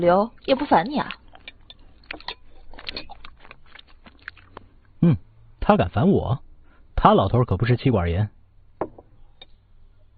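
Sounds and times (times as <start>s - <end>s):
speech: 0.0s - 1.2s, 5.0s - 8.4s
person chewing and biting while eating a meal: 1.1s - 5.0s.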